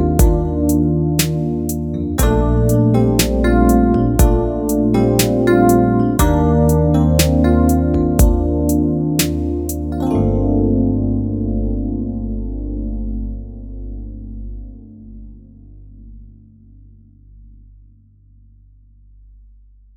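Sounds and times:
Rhodes electric piano: 0.0 - 15.8.

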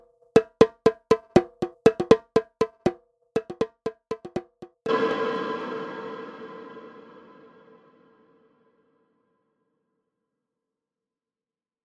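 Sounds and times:
raw Anatolian percussion playing: 0.0 - 4.9.

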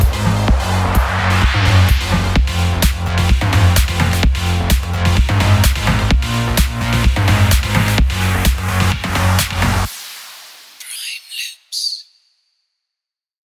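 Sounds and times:
mainroom electronic dance drums: 0.0 - 11.7.

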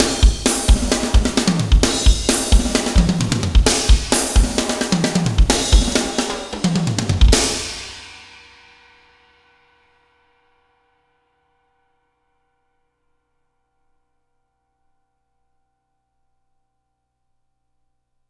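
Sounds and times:
music bar ending: 0.0 - 7.8.

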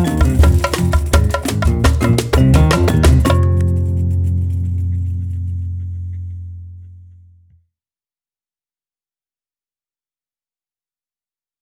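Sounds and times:
silver tamborim: 0.0 - 7.4.

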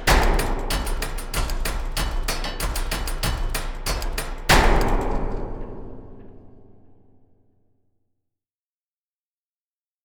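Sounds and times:
bang: 0.2 - 7.2.

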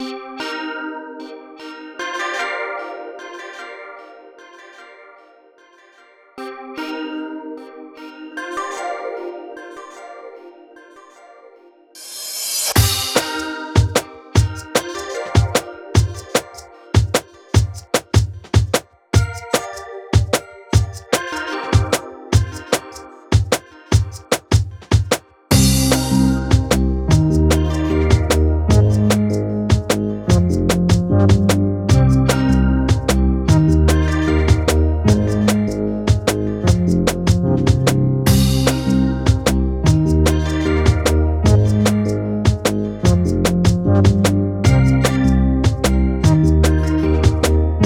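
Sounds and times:
small drum and bass loop: 12.7 - 47.8.

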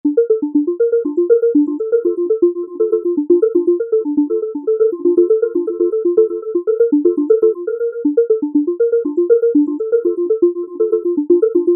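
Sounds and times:
synth music: 0.1 - 11.7.

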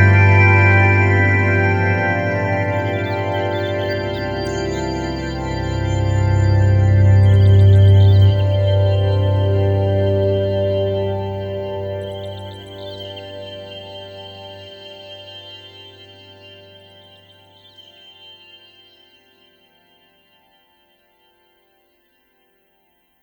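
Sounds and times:
new age orchestral music in C major 9 mixolydian: 0.0 - 14.4.

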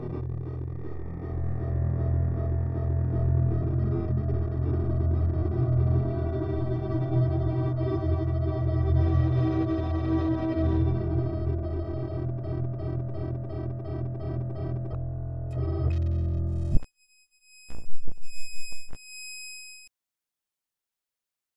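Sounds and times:
granular synthesis texture: 0.2 - 16.9.

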